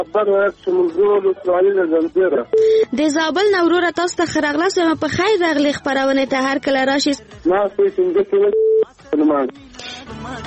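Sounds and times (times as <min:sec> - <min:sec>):
speech: 0:00.0 - 0:10.4
telephone tone after a call's line is cut off: 0:08.5 - 0:09.4.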